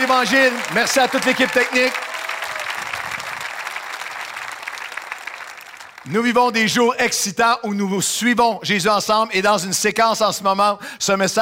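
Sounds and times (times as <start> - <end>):
audience applause: 0.0 - 6.1
speech: 0.1 - 2.1, 6.0 - 11.4.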